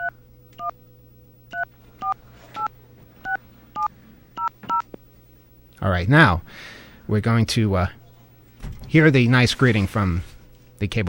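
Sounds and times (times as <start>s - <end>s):
telephone number being dialed with touch tones: 0.0s - 0.8s, 1.5s - 4.9s
speech: 5.8s - 8.0s, 8.9s - 11.0s.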